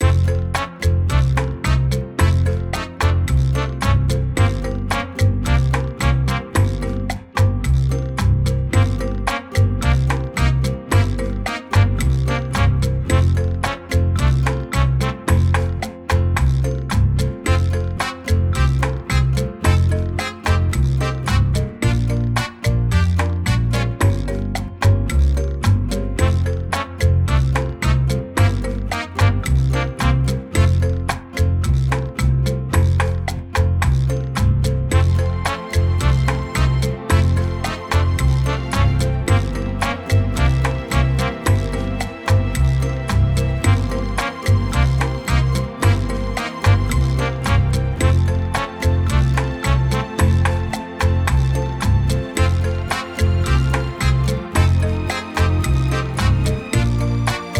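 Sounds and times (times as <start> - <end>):
lobby music: 0.0 - 57.5.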